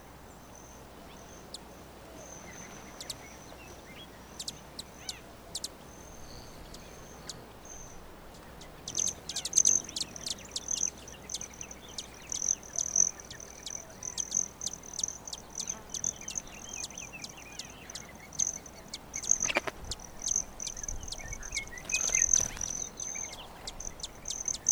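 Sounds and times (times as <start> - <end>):
broad-tailed hummingbird: 0.0 - 24.7.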